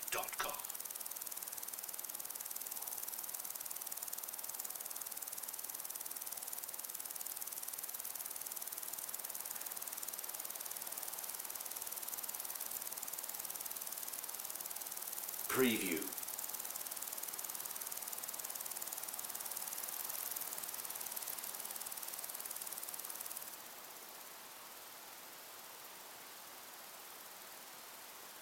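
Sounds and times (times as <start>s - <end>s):
cricket chorus: 0.0s - 15.5s, 16.1s - 28.4s
faint hiss: 0.0s - 28.4s
speech: 15.6s - 16.1s.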